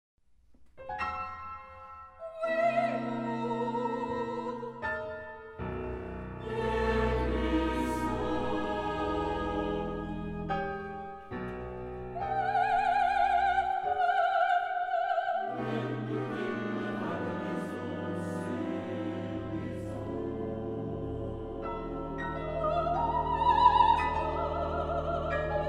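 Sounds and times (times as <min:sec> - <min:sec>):
final choir singing: 0:02.2 - 0:04.8, 0:06.0 - 0:11.4, 0:12.1 - 0:25.6.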